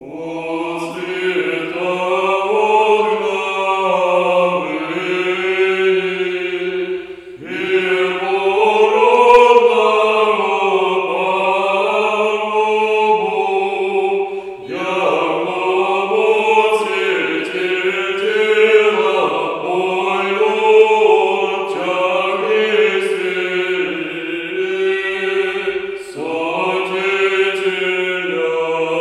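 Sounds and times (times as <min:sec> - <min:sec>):
Orthodox liturgical chant: 0:00.0 - 0:28.9.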